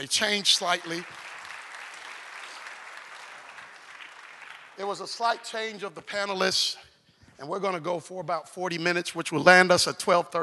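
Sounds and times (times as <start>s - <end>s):
speech: 0.0s - 1.3s, 4.8s - 10.4s
audience applause: 0.0s - 5.4s.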